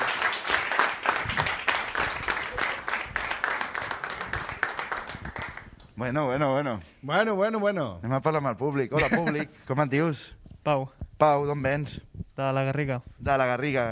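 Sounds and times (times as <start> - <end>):
audience applause: 0.0 - 5.7
speech: 6.0 - 13.9.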